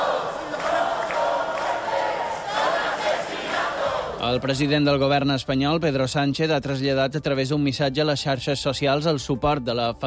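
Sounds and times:
large protest crowd shouting: 0.0 - 4.5
speech: 4.2 - 10.0.

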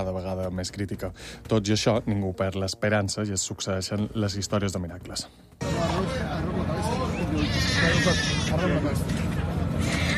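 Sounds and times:
speech: 0.0 - 10.0
murmur of people talking: 5.5 - 10.1
rescued nine-month-old baby crying: 7.3 - 8.6, 9.8 - 10.1.

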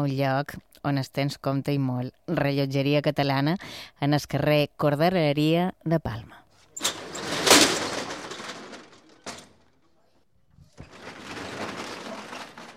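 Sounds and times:
speech: 0.0 - 6.4
clunks: 6.6 - 10.0, 10.6 - 12.7
shop's metal shutter being raised: 6.7 - 9.8, 10.7 - 12.7.

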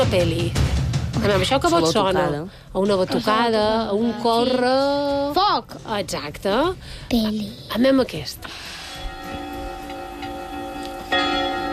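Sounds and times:
speech: 0.0 - 8.7
church bells ringing: 8.8 - 11.7.

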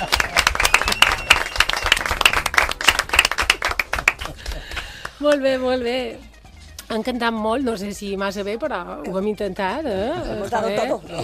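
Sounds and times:
loud applause: 0.0 - 4.8
speech: 5.2 - 6.3, 6.9 - 11.2.

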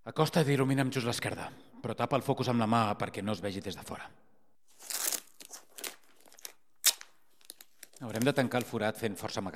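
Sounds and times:
speech: 0.1 - 4.2, 8.0 - 9.5
duct tape being torn from roll: 4.8 - 8.4.

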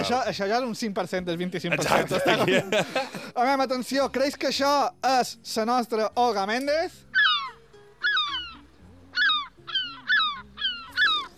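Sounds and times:
speech: 0.0 - 7.0
laughter: 1.6 - 3.4
seagull calling: 7.1 - 11.3.

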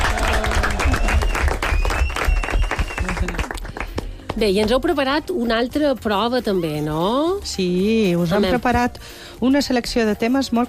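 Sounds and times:
applause: 0.0 - 4.2
speech: 4.4 - 10.6.

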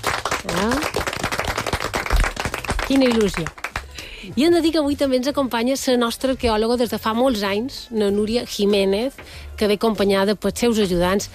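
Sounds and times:
small group clapping in a radio studio: 0.0 - 4.1
speech: 0.4 - 0.8, 2.9 - 3.6, 4.2 - 11.3.

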